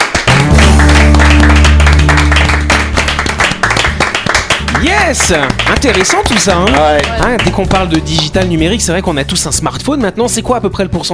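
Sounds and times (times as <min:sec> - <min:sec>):
audience applauding the guest: 0:00.0 - 0:08.6
speech: 0:05.0 - 0:11.1.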